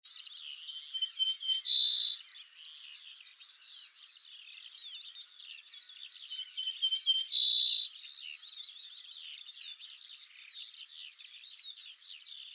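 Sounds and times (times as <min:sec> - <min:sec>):
ortolan bunting singing: 0:00.5 - 0:03.6, 0:04.7 - 0:10.1.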